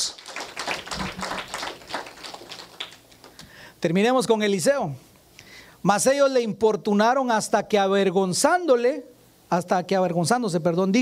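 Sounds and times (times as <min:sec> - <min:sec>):
audience applause: 0:00.0 - 0:03.4
speech: 0:03.8 - 0:05.1, 0:05.8 - 0:11.0.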